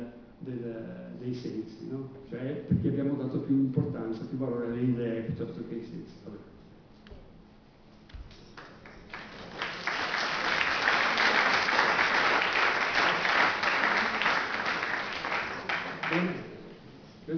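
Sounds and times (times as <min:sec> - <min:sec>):
speech: 0:00.5 - 0:06.6
farewell applause: 0:08.4 - 0:16.6.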